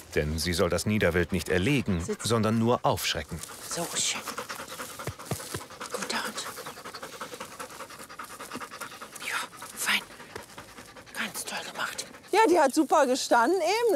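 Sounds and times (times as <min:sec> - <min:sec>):
speech: 0:00.1 - 0:04.5, 0:12.5 - 0:13.9
hunting dog panting: 0:00.4 - 0:13.9.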